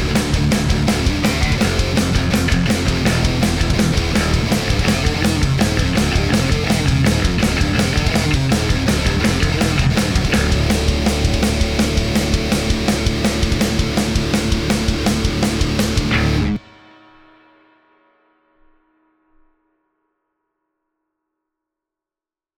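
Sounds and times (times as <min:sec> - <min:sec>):
guitar riffs: 0:00.0 - 0:16.6.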